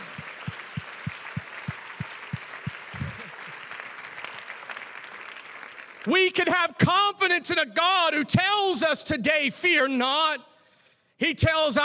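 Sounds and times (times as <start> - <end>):
audience applause: 0.0 - 6.1
speech: 6.0 - 10.5, 11.2 - 11.8.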